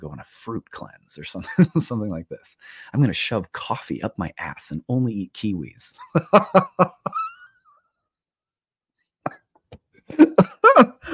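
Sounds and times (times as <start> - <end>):
speech: 0.2 - 7.2, 10.1 - 11.1
laughter: 1.4 - 2.2, 6.0 - 7.4, 10.1 - 11.1
person coughing: 10.1 - 11.1.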